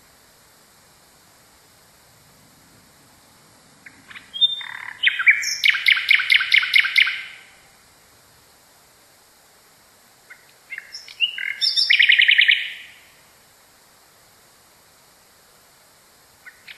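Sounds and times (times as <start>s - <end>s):
nightingale singing: 3.8s - 7.8s, 10.2s - 13.2s, 16.4s - 16.7s.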